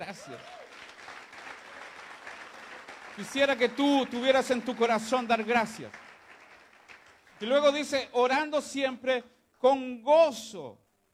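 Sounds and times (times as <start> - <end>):
speech: 0.0 - 0.6, 3.2 - 6.0, 7.4 - 10.8
audience applause: 0.0 - 7.8.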